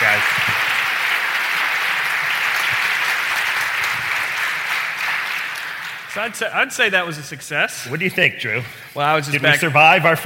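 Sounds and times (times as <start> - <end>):
live studio audience applause at a podcast taping: 0.0 - 6.7
speech: 6.2 - 10.2.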